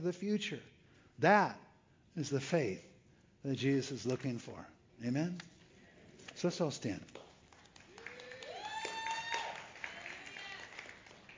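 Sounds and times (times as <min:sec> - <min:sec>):
speech: 0:00.0 - 0:01.6, 0:02.2 - 0:05.5, 0:06.4 - 0:07.2
audience cheering and applauding: 0:07.6 - 0:11.3.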